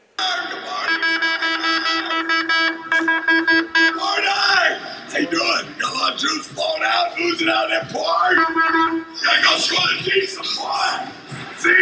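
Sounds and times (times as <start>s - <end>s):
air horn blasts: 0.2s - 5.2s, 8.2s - 9.8s
speech: 6.1s - 11.8s.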